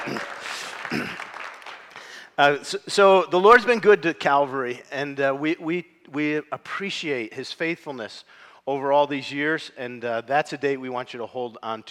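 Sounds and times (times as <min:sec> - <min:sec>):
crowd applauding at a church event: 0:00.0 - 0:02.4
speech: 0:02.4 - 0:11.8.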